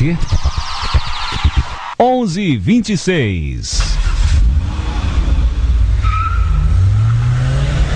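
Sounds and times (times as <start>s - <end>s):
speech: 0.0s - 0.4s, 2.0s - 3.9s
red Ford Escort engine roar driving off: 3.7s - 7.9s
red Ford Escort tire screech: 4.0s - 7.9s.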